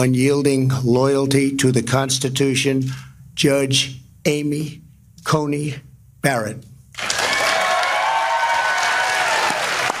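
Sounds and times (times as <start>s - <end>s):
speech: 0.0s - 7.1s
audience applause: 7.0s - 9.9s.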